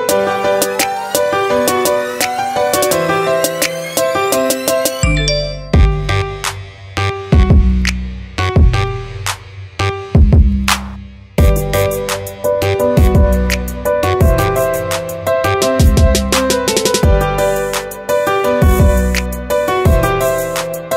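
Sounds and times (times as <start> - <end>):
trap remix: 0.1 - 20.9.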